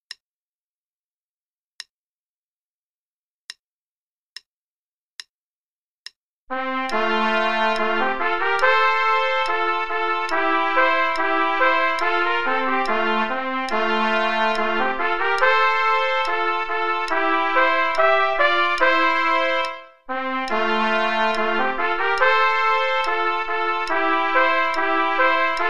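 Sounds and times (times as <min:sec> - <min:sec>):
play-along music with both parts: 0:06.5 - 0:25.6.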